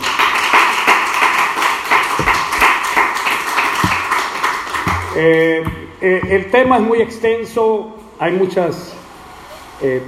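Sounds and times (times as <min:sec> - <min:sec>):
audience applauding: 0:00.0 - 0:05.3
speech: 0:05.2 - 0:09.0, 0:09.8 - 0:10.0.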